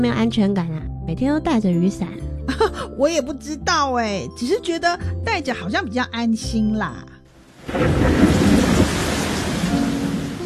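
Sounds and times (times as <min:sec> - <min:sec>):
speech: 0:00.0 - 0:07.1
sudden heavy rain: 0:07.4 - 0:10.4.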